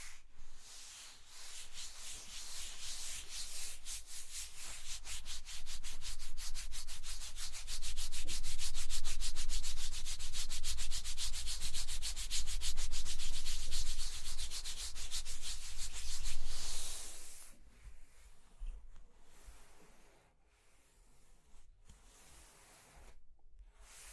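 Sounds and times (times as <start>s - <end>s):
scratching and tracing rasping strokes: 0.7s - 17.5s.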